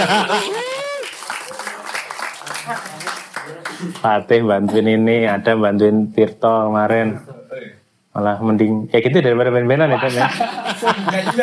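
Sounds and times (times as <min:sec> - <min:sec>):
speech: 0:00.0 - 0:00.6, 0:03.8 - 0:07.3, 0:08.2 - 0:11.4
laughter: 0:00.0 - 0:01.1, 0:09.8 - 0:11.4
audience applause: 0:00.0 - 0:04.0.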